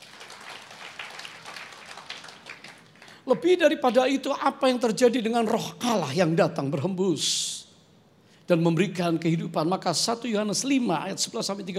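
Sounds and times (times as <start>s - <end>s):
audience applause: 0.0s - 3.2s
speech: 3.3s - 7.5s, 8.5s - 11.7s.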